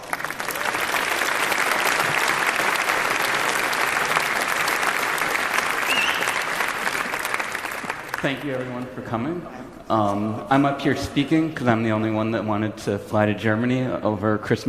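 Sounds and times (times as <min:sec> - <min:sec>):
audience applause: 0:00.0 - 0:09.1
speech: 0:08.2 - 0:14.6.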